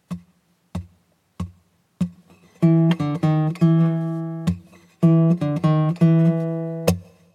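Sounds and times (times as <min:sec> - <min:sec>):
blues guitar turnaround: 0:02.0 - 0:07.2.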